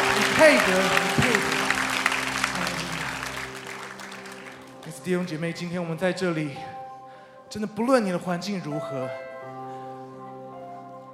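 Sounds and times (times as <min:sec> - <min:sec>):
congregation clapping in praise during a Chinese-language church worship service: 0:00.0 - 0:05.7
speech: 0:00.4 - 0:01.6, 0:04.9 - 0:06.8, 0:07.5 - 0:09.2.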